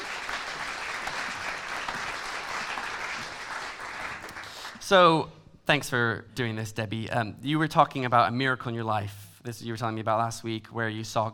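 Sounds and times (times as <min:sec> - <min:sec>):
audience applause: 0:00.0 - 0:04.8
speech: 0:04.9 - 0:11.3.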